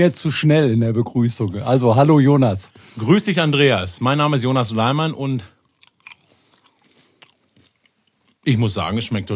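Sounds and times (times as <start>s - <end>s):
speech: 0.0s - 5.6s, 8.4s - 9.3s
popcorn being chewed: 5.6s - 8.5s.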